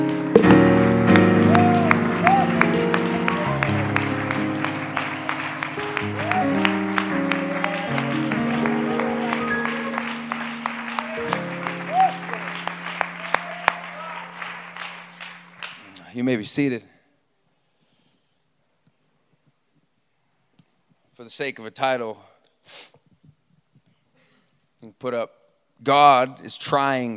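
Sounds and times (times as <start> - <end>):
audience clapping hands: 0.0 - 16.1
speech: 16.3 - 16.9, 21.3 - 23.0, 24.8 - 27.1.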